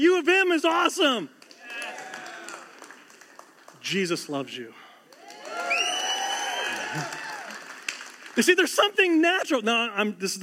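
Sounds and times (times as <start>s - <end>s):
speech: 0.0s - 1.4s, 3.9s - 4.8s, 6.9s - 7.2s, 8.4s - 10.4s
crowd cheering and whooping: 1.6s - 2.7s, 5.2s - 7.8s.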